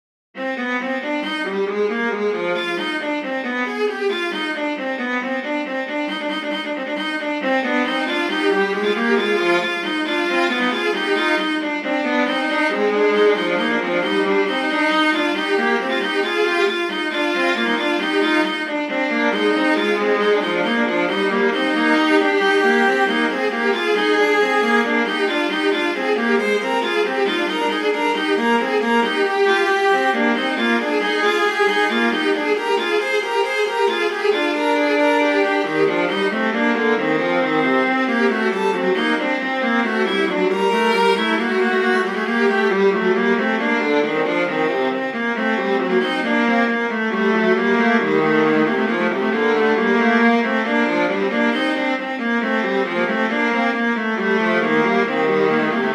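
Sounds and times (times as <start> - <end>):
viola duet playing: 0.4 - 55.9.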